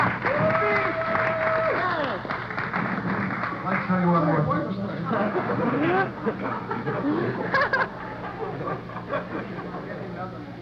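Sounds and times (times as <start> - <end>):
crowd clapping: 0.0 - 4.0
laughter: 5.1 - 9.9
speech: 6.0 - 8.0.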